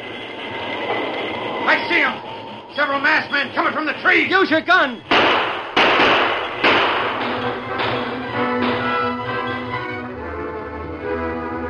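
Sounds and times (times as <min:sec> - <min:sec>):
high metallic hiss of train brakes: 0:00.0 - 0:08.7
train braking to a stop: 0:00.0 - 0:10.1
speech: 0:01.7 - 0:05.4.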